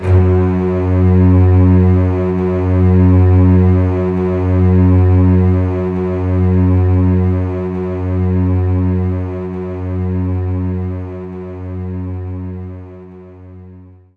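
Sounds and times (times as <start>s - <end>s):
string loop in F sharp: 0.0s - 13.8s.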